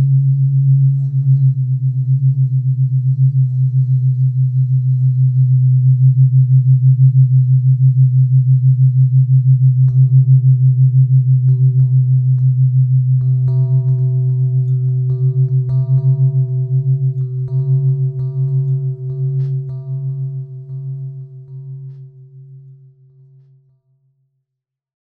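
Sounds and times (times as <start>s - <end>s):
bells: 0.0s - 6.9s, 9.8s - 23.5s
drones: 0.0s - 23.5s.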